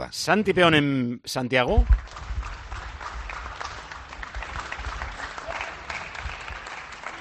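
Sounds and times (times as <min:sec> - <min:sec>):
speech: 0:00.0 - 0:02.2
distant applause from many people across open city streets: 0:02.0 - 0:07.1.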